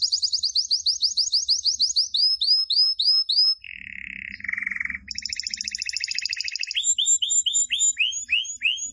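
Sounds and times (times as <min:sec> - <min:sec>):
canary singing persistently: 0:00.0 - 0:08.9.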